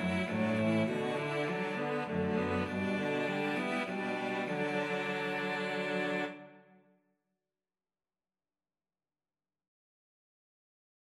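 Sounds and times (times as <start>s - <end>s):
cello trio playing a Korean folk song: 0.0s - 6.6s.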